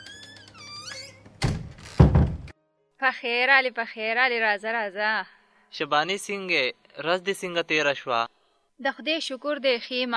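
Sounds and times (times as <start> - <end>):
door being closed: 0.0 - 2.5
speech: 3.0 - 10.1.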